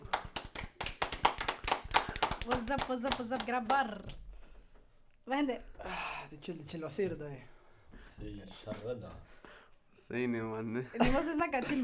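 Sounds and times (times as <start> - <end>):
applause: 0.0 - 3.8
speech: 2.5 - 4.2, 5.3 - 7.5, 8.2 - 9.4, 10.0 - 11.8.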